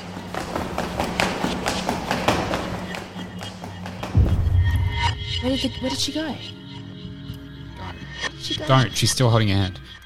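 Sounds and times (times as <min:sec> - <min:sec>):
footsteps running down a flight of stairs: 0:00.0 - 0:04.4
speech: 0:05.4 - 0:06.6, 0:08.5 - 0:10.0.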